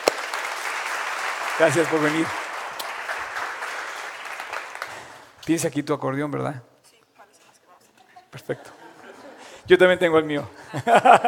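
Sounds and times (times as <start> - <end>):
audience applause: 0.0 - 5.4
speech: 1.6 - 2.4, 5.5 - 6.7, 8.4 - 8.8, 9.6 - 11.2
laughter: 7.9 - 11.2.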